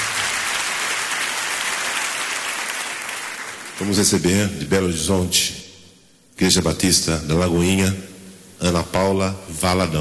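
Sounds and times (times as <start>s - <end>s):
audience applause: 0.0s - 4.0s
speech: 3.8s - 5.6s, 6.4s - 9.9s.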